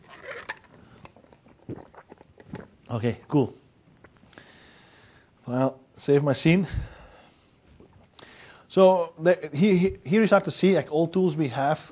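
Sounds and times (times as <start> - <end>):
person drinking water: 0.0 - 2.9, 3.9 - 4.7, 7.7 - 8.6
speech: 2.9 - 3.6, 5.5 - 6.9, 8.8 - 11.9.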